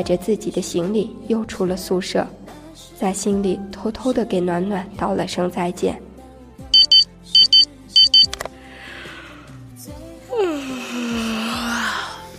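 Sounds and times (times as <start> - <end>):
speech: 0.0 - 6.1
alarm clock beeping: 6.8 - 8.3
person yawning with a groan: 10.3 - 12.2.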